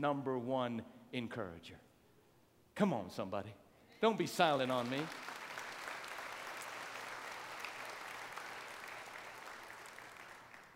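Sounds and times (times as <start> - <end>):
speech: 0.0 - 1.9, 2.8 - 5.4
light polite golf clap applause from an audience: 4.4 - 10.7.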